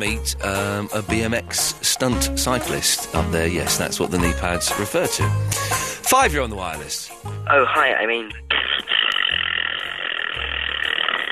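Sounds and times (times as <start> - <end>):
speech: 0.0 - 8.6
vocal raspberry imitating a fart: 8.5 - 11.3.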